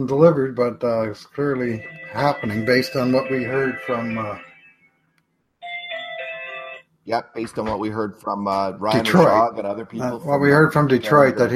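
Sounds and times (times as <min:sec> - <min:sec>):
speech: 0:00.0 - 0:04.5, 0:07.1 - 0:11.5
phone ringing: 0:01.6 - 0:05.0, 0:05.6 - 0:06.9.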